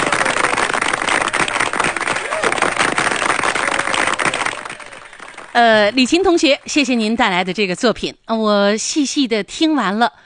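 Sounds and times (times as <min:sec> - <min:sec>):
applause: 0:00.0 - 0:07.8
speech: 0:05.6 - 0:10.2.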